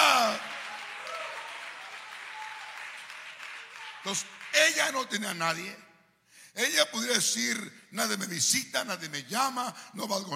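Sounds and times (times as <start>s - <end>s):
audience applause: 0.0s - 5.2s
speech: 4.0s - 5.9s, 6.6s - 10.3s.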